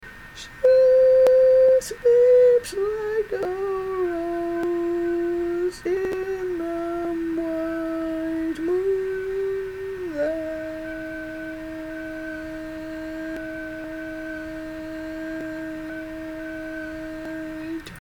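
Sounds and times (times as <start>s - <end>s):
tenor singing: 0.4s - 18.0s.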